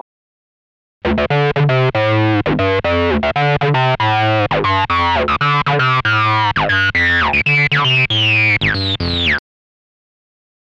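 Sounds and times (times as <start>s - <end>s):
distorted 303 synth bass: 1.1s - 9.4s.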